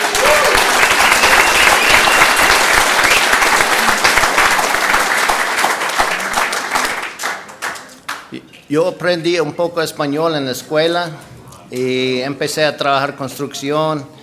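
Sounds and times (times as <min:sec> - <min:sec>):
crowd applause: 0:00.0 - 0:08.3
speech: 0:08.7 - 0:14.2.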